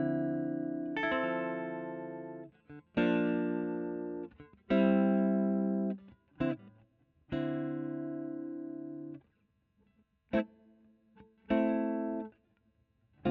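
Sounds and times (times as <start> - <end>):
electric guitar: 0.0 - 9.2, 11.2 - 12.3.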